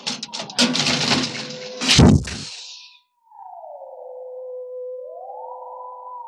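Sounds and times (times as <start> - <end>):
burst of air from torpedo launch with deep thump: 1.8 - 2.8.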